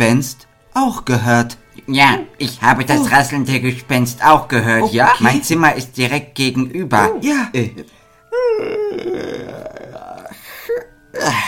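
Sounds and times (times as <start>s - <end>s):
speech: 0.0s - 8.0s
loud yawn: 8.3s - 11.4s.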